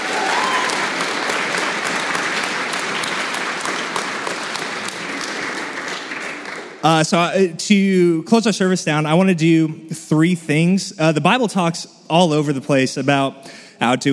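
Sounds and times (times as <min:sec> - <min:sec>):
room full of people clapping: 0:00.0 - 0:07.2
speech: 0:06.8 - 0:14.1.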